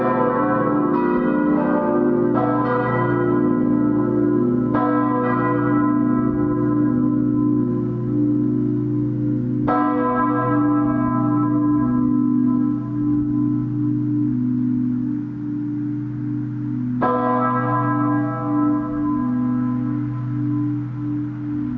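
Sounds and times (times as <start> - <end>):
pilgrimage church bells ringing in Biberbach near Augsburg in Bavarian Swabia: 0.0 - 21.7.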